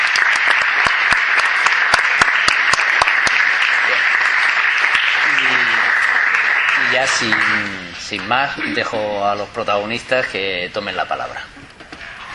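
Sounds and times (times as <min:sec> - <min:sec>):
audience applause: 0:00.0 - 0:08.3
speech: 0:07.0 - 0:11.6.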